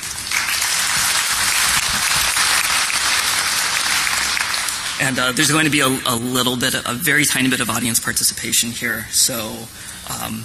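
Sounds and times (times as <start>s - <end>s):
packed crowd applause: 0.0s - 5.9s
speech: 5.0s - 10.4s.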